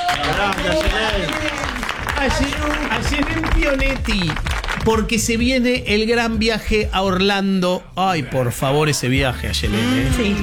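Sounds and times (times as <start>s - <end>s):
audience applause: 0.0s - 5.1s
speech: 0.1s - 10.4s.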